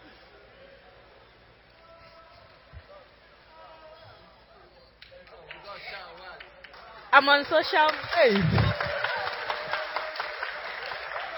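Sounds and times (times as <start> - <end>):
crowd clapping: 5.0 - 11.3
speech: 7.2 - 8.6.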